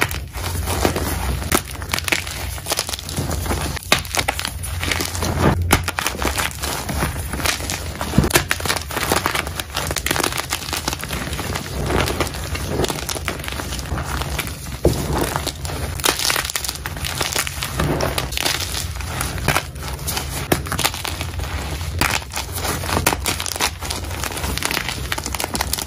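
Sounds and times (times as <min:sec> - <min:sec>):
low hum: 0:00.0 - 0:25.0
gym chalk crushed and kneaded: 0:00.0 - 0:25.8.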